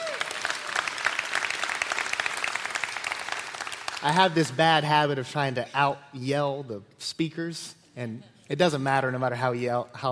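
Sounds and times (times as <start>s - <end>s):
audience applause: 0.0s - 4.6s
speech: 4.0s - 10.1s.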